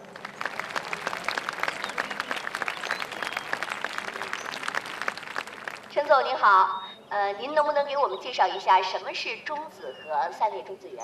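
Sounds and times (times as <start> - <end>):
audience applause: 0.0 - 6.0
speech: 6.0 - 11.0.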